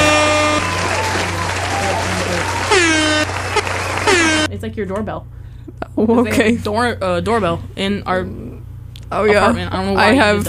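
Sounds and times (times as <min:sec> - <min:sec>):
crowd applauding sound effect: 0:00.0 - 0:04.5
speech: 0:04.7 - 0:08.4, 0:09.1 - 0:10.4.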